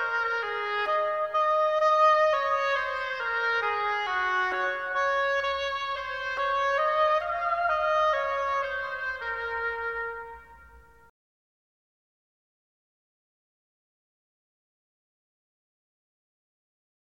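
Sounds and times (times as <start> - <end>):
oboe: 0.0 - 11.1.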